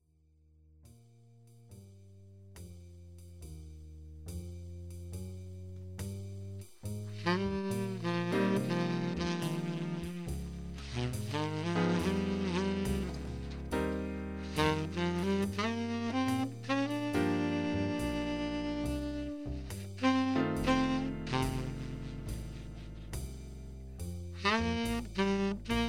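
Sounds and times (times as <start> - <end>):
saxophone subtone: 7.1 - 23.8, 24.4 - 25.8.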